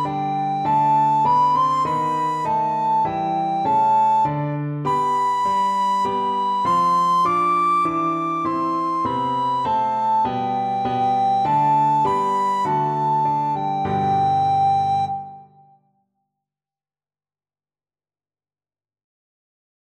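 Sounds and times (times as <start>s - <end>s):
classical melody played on a recorder: 0.0s - 15.6s.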